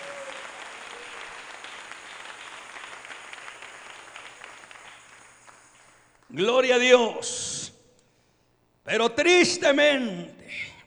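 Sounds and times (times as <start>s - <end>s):
audience applause: 0.0s - 6.2s
speech: 6.3s - 7.6s, 8.9s - 10.6s.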